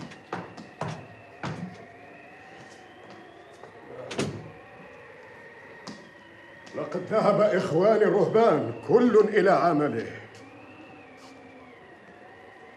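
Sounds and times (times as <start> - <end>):
door being opened: 4.1 - 4.5
speech: 6.7 - 10.2.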